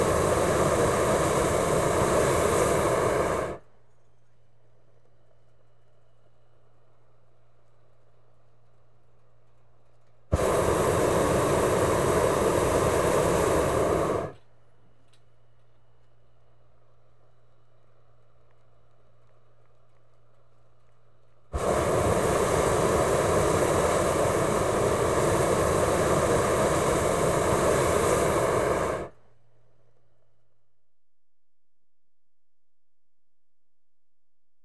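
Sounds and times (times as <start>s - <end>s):
gas burners and pilot light: 0.0s - 3.6s, 10.3s - 14.5s, 21.6s - 29.2s.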